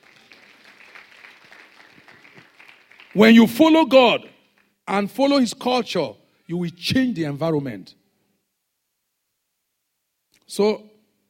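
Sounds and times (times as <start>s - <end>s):
audience clapping: 0.0s - 3.7s
speech: 3.2s - 4.3s, 4.9s - 8.0s, 10.5s - 10.9s.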